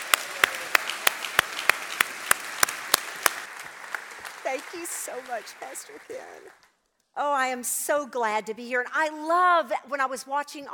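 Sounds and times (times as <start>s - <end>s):
church congregation applause welcoming a returning guest speaker: 0.0s - 6.7s
speech: 4.5s - 6.6s, 7.2s - 10.7s.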